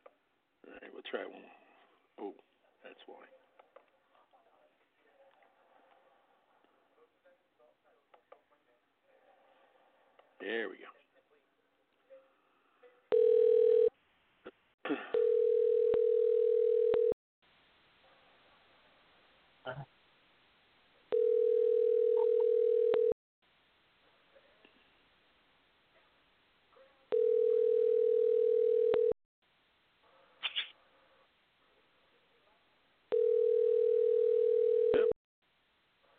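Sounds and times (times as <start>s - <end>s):
speech: 1.1s - 1.6s, 2.2s - 3.4s, 10.5s - 11.0s
phone call ringing tone: 13.1s - 13.9s, 15.1s - 17.2s, 21.1s - 23.2s, 27.1s - 29.2s, 33.1s - 35.2s.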